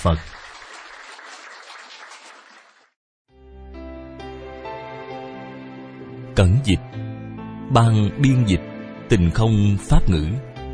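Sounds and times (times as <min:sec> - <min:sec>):
speech: 0:00.0 - 0:00.4, 0:06.4 - 0:07.0, 0:07.7 - 0:10.5
audience applause: 0:00.0 - 0:03.0.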